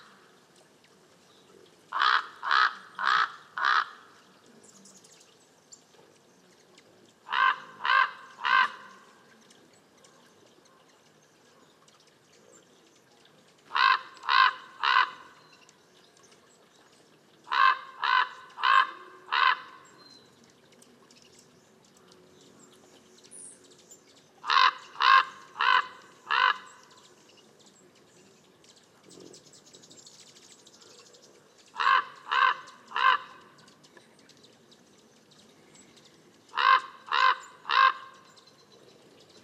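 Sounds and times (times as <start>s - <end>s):
Northern raven Corvus corax sinuatus: 1.9s - 4.2s, 7.2s - 9.2s, 13.7s - 15.6s, 17.5s - 20.0s, 24.4s - 27.0s, 31.7s - 33.6s, 36.5s - 38.3s.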